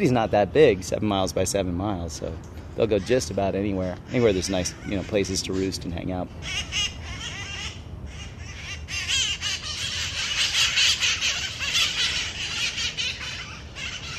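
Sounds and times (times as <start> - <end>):
speech: 0.0 - 7.0
wild parrots squawking: 2.8 - 14.1.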